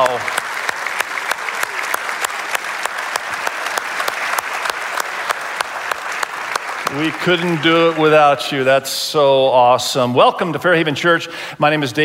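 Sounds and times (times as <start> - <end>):
audience applause for mothers: 0.0 - 8.8
speech: 7.0 - 12.0.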